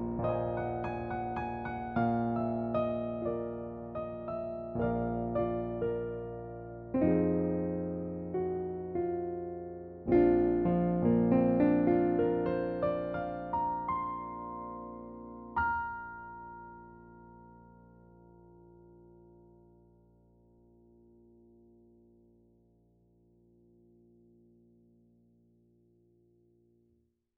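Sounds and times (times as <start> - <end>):
grand piano: 0.0 - 26.4.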